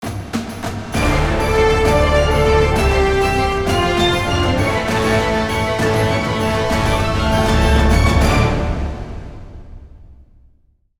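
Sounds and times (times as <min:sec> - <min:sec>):
victory theme music: 0:00.9 - 0:10.1.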